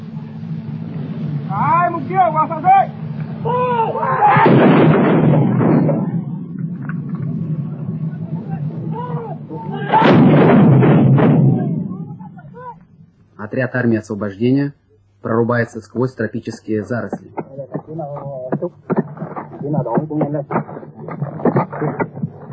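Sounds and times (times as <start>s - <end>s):
speech: 1.5s - 4.4s, 13.5s - 17.4s, 19.7s - 20.8s, 21.8s - 22.1s
artillery battery firing: 4.3s - 8.8s, 9.7s - 12.6s.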